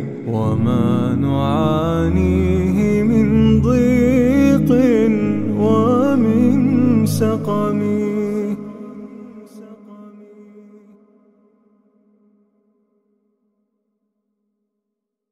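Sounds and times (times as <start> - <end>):
unaccompanied vocal nasheed: 0.0 - 11.3.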